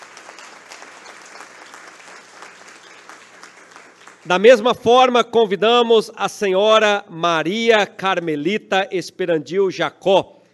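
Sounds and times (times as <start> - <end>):
audience applause: 0.0 - 4.7
speech: 4.2 - 10.4.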